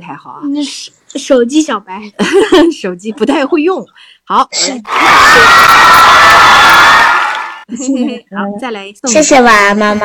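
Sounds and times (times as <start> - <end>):
speech: 0.0 - 6.6, 7.7 - 10.0
applause and cheering sound effect: 4.9 - 7.7.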